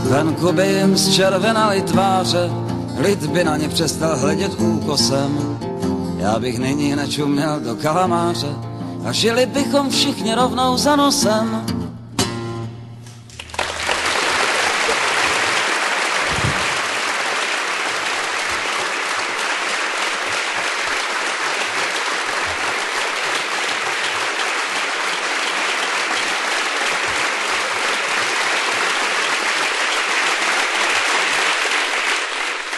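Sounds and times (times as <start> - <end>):
speech: 0.1 - 5.7, 6.2 - 11.8
large audience applause: 13.3 - 32.7.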